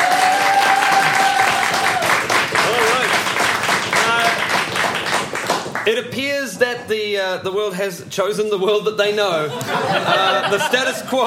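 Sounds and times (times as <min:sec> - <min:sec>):
audience clapping to vote: 0:00.0 - 0:06.3
speech: 0:05.9 - 0:11.2
laughter: 0:09.4 - 0:11.2.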